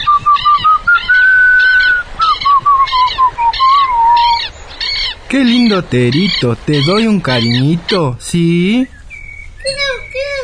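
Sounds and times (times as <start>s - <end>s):
boy whistling a wavering tune while walking: 0.0s - 4.4s
brighter rhythmic chirping bursts: 0.0s - 10.4s
speech: 5.3s - 9.0s.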